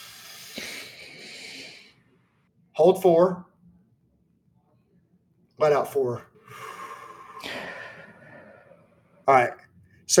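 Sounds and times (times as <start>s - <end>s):
slow inhale through the nose: 0.0s - 1.9s, 6.4s - 8.7s
speech: 2.8s - 3.5s, 5.6s - 6.3s, 9.3s - 10.1s.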